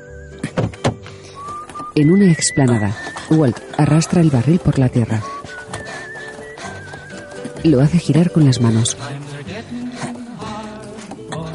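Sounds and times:
car door opening: 0.4 - 2.0
faint whistling tone: 1.2 - 8.1
speech: 2.0 - 5.4, 7.6 - 9.2.

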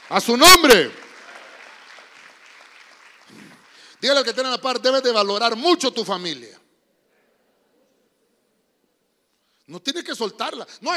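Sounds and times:
crowd clapping: 0.0 - 5.0
speech: 0.1 - 1.0, 4.0 - 6.6, 9.7 - 10.9.

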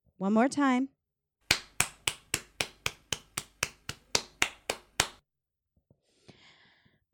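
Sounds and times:
speech: 0.2 - 1.0
hand spanking a bare bottom: 1.5 - 5.2.

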